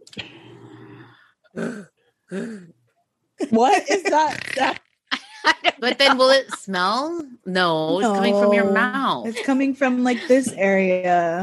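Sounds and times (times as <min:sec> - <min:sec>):
person imitating loud snore: 0:00.2 - 0:02.7
speech: 0:01.6 - 0:02.8, 0:03.4 - 0:04.8, 0:05.5 - 0:11.4
laughter: 0:03.5 - 0:06.9, 0:08.0 - 0:10.5.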